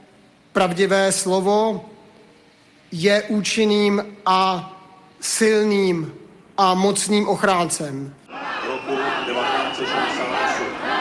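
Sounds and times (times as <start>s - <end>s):
speech: 0.6s - 2.0s, 2.9s - 8.2s
crowd whistling: 8.3s - 10.9s.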